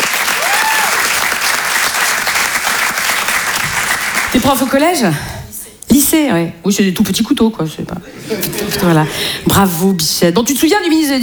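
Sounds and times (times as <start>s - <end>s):
audience applause: 0.0s - 4.7s
speech: 4.4s - 5.4s, 6.1s - 11.2s
laughter: 8.0s - 9.5s.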